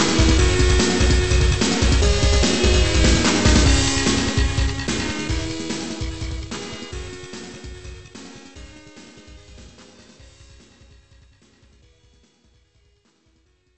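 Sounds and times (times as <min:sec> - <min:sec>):
stage complete jingle: 0:00.0 - 0:07.7.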